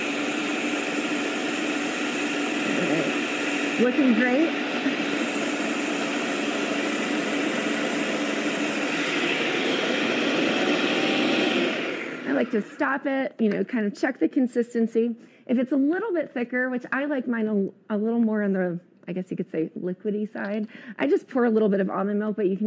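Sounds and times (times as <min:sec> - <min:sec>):
blender running: 0:00.0 - 0:13.2
speech: 0:03.8 - 0:05.0, 0:12.4 - 0:22.6.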